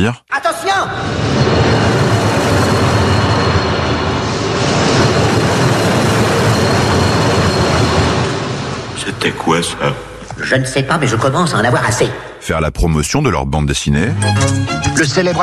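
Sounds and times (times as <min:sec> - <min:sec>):
speech: 0:00.0 - 0:01.7, 0:09.1 - 0:15.4
Paris metro train passing: 0:00.6 - 0:11.6.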